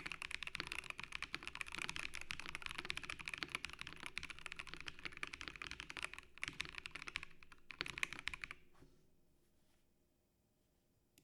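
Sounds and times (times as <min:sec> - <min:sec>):
Razer BlackWidow V4 75 keyboard sound test: 0:00.0 - 0:08.6.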